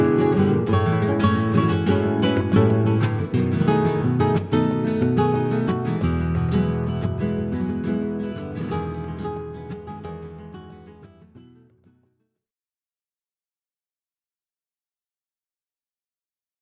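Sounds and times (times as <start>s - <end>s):
Spanish guitar duo playing a rumba: 0.0s - 11.6s.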